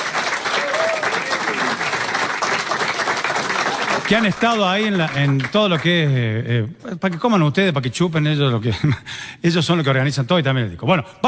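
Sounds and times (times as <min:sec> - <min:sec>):
audience applause: 0:00.0 - 0:06.2
speech: 0:04.1 - 0:11.2.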